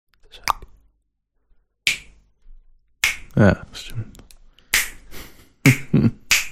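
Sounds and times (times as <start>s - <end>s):
loud finger snaps: 3.0s - 3.4s, 4.7s - 5.0s, 5.7s - 6.5s
speech: 3.4s - 4.2s.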